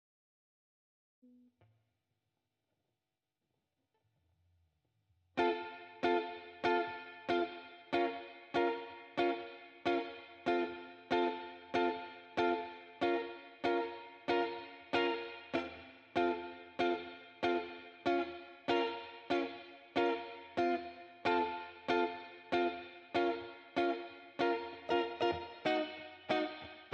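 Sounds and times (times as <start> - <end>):
guitar: 5.4 - 26.9.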